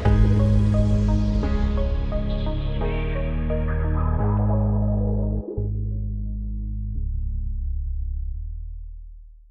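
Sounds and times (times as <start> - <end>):
drum and bass music: 0.0 - 7.4.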